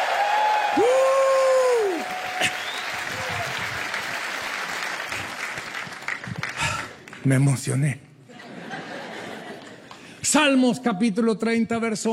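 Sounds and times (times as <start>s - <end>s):
loud rising-and-falling whoop: 0.0s - 3.9s
audience triumphant shouting and applause: 0.0s - 6.7s
speech: 7.2s - 8.1s, 10.3s - 12.1s
laughter: 8.3s - 9.9s.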